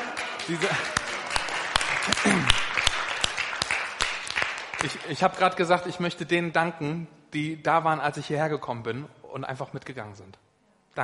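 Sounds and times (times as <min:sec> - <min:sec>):
audience applause: 0:00.0 - 0:05.2
speech: 0:00.5 - 0:01.1, 0:02.0 - 0:02.8, 0:04.8 - 0:10.4.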